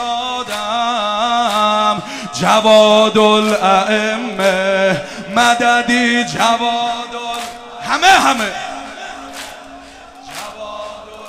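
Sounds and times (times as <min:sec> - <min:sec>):
crowd of young people chanting in praise of Imam Jawad: 0:00.0 - 0:11.2
speech: 0:02.4 - 0:07.3, 0:07.9 - 0:08.6.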